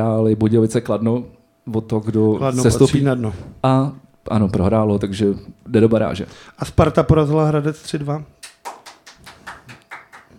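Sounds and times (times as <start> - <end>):
speech: 0.0 - 8.4
hand claps: 8.4 - 10.3.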